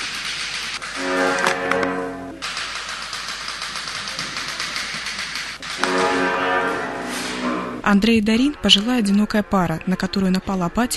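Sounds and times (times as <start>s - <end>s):
typewriter keys clacking: 0.0s - 1.0s, 2.4s - 5.9s
low bowed cello notes: 1.0s - 2.4s, 5.8s - 8.0s
speech: 7.9s - 10.9s.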